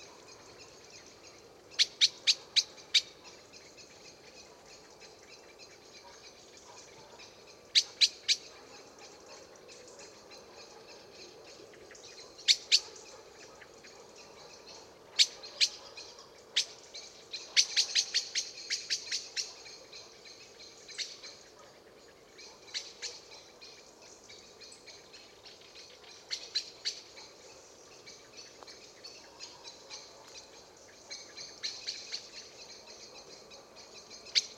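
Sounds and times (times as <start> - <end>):
Common blackbird chink calls: 0.0 - 34.5.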